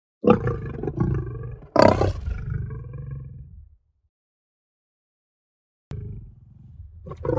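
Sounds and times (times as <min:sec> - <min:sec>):
lion snarling and growling: 0:00.2 - 0:03.8, 0:05.9 - 0:07.3.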